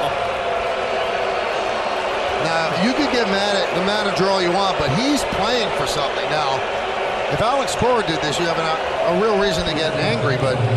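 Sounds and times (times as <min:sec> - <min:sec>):
loud baseball stadium crowd roaring at a walk: 0:00.0 - 0:10.7
speech: 0:02.5 - 0:10.7.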